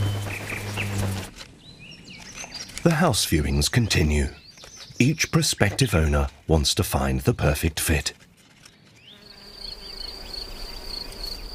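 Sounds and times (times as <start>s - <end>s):
bees buzzing: 0.0s - 1.4s, 9.0s - 11.5s
speech: 2.8s - 4.4s, 5.0s - 8.2s.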